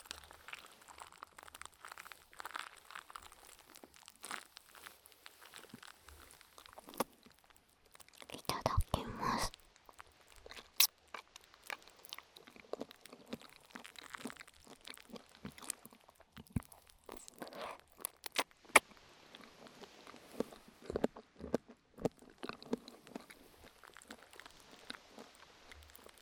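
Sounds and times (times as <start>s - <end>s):
small crackles and clicks: 0.0s - 26.2s
quiet whispering: 8.2s - 9.6s, 16.5s - 18.0s
slurping tokoroten noodles with black vinegar: 16.4s - 18.8s.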